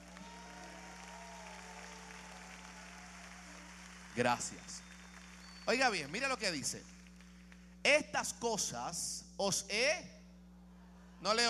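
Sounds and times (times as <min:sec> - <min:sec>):
audience applause: 0:00.0 - 0:07.7
speech: 0:04.2 - 0:04.9, 0:05.7 - 0:06.9, 0:07.8 - 0:10.2, 0:11.2 - 0:11.4.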